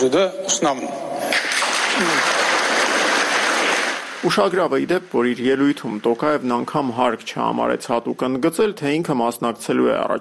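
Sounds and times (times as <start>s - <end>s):
speech: 0.0s - 1.4s, 2.0s - 2.6s, 4.2s - 10.1s
parliament deputies applauding: 1.3s - 6.8s.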